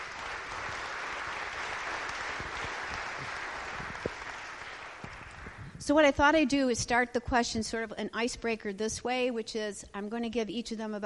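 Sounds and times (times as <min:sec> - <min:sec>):
audience applause: 0:00.0 - 0:05.7
speech: 0:05.9 - 0:11.0.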